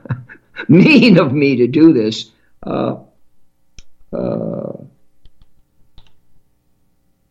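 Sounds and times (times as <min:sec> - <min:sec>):
speech: 0:00.6 - 0:03.1, 0:04.1 - 0:04.5
note being typed on a computer keyboard: 0:03.8 - 0:04.0, 0:05.2 - 0:06.2.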